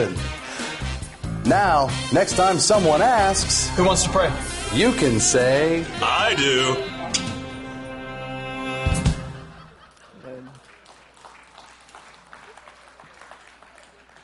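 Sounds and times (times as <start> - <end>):
speech: 0.0 - 0.4, 1.4 - 7.2
laughter: 9.0 - 11.2
audience applause: 9.7 - 14.2.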